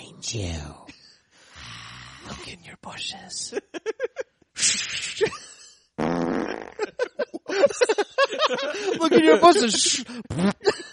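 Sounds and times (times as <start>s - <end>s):
speech: 0.2s - 0.9s, 2.2s - 4.0s, 7.8s - 10.8s
fart: 1.6s - 2.4s, 6.0s - 6.8s, 10.3s - 10.6s
laughter: 3.6s - 4.4s, 6.6s - 10.9s.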